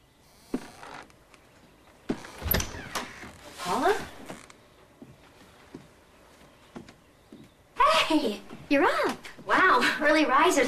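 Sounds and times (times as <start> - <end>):
tiptoeing footsteps: 0.4 - 10.0
bedroom door opening: 2.1 - 4.6
speech: 8.7 - 9.2, 10.0 - 10.6.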